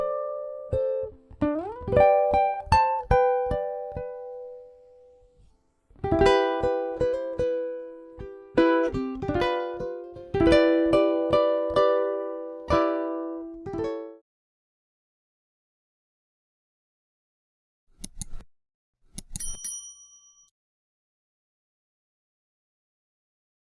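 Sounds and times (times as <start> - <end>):
ukulele: 0.0 - 4.8, 6.0 - 14.2.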